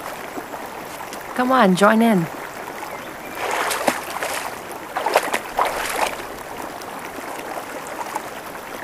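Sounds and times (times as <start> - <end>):
water splashing and gurgling: 0.0 - 8.8
speech: 1.4 - 2.4.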